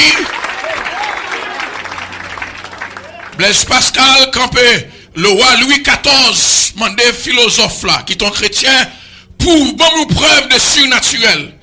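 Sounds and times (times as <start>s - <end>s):
church congregation applauding: 0.0s - 3.8s
speech: 3.4s - 11.6s.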